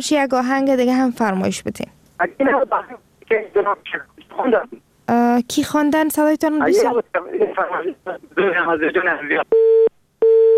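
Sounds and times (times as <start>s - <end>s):
speech: 0.0s - 10.0s
telephone busy tone after a dropped call: 9.5s - 10.5s.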